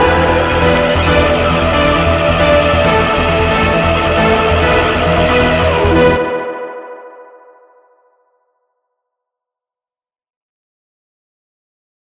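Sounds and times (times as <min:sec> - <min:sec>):
remix with hard beat: 0:00.0 - 0:06.8.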